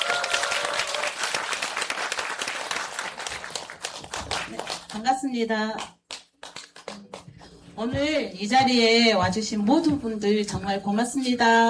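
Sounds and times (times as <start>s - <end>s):
audience applause: 0.0s - 4.9s
speech: 4.5s - 5.9s, 7.8s - 11.6s.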